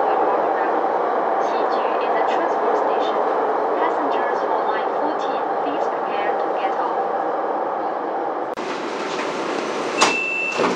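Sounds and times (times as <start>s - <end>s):
Beijing subway Line 10 train arriving at Xiju station: 0.0s - 10.7s.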